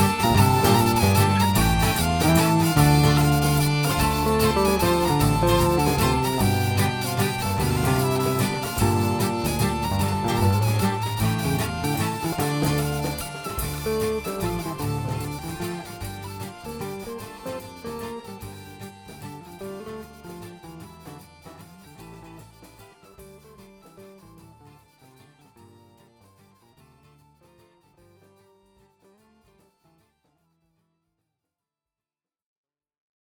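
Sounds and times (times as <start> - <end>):
mazurka dance music: 0.0 - 25.0.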